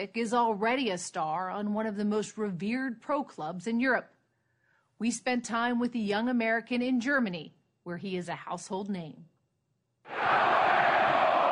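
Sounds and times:
speech: 0.0 - 4.2, 5.0 - 9.3
stadium crowd of fans screaming: 10.1 - 11.5.

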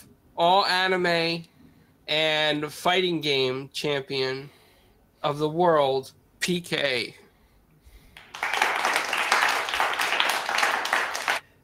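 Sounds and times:
speech: 0.4 - 1.5, 2.1 - 4.6, 5.2 - 7.2
clapping: 8.2 - 11.4.

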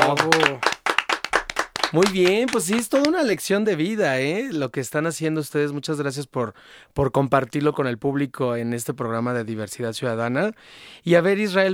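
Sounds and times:
audience applause: 0.0 - 3.3
speech: 0.1 - 0.7, 1.9 - 11.7.

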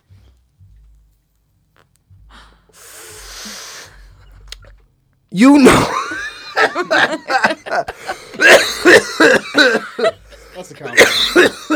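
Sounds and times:
person inhaling smoke from a hit of weed: 2.2 - 4.6
speech: 5.3 - 6.0, 6.8 - 7.9, 9.2 - 11.7
laughter: 5.8 - 11.7.

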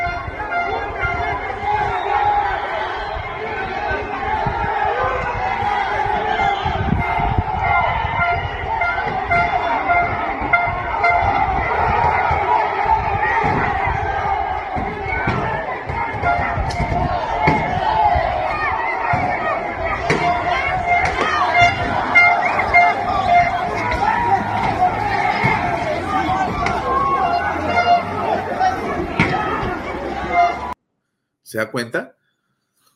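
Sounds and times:
ambulance honking amid protest crowd: 0.0 - 2.6, 6.0 - 12.8, 19.0 - 30.8
large protest crowd roaring, chattering and shouting: 0.0 - 30.8
speech: 31.6 - 32.1.

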